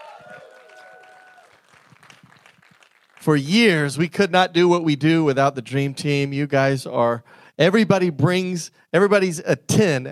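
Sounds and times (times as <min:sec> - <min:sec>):
audience cheering and applauding: 0:00.0 - 0:03.3
speech: 0:03.2 - 0:10.1.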